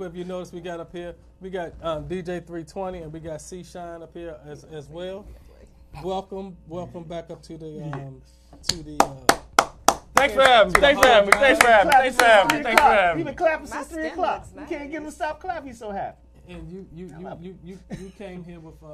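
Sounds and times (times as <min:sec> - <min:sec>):
speech: 0:00.0 - 0:09.4, 0:10.2 - 0:18.9
happy studio guest clapping: 0:08.6 - 0:13.2.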